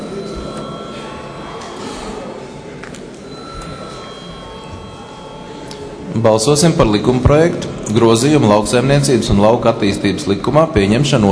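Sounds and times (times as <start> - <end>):
parliament chamber voting bell ringing: 0.0 - 7.2
speech: 6.2 - 11.2.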